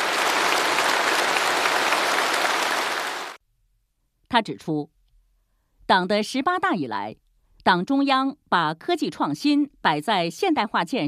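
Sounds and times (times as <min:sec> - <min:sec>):
warm applause from audience: 0:00.0 - 0:03.4
speech: 0:04.4 - 0:05.0, 0:05.9 - 0:11.0.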